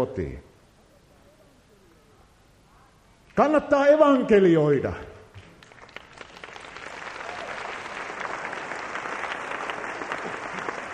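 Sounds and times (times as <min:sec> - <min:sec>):
speech: 0:00.0 - 0:00.5, 0:03.4 - 0:05.1
audience applause: 0:05.6 - 0:10.9.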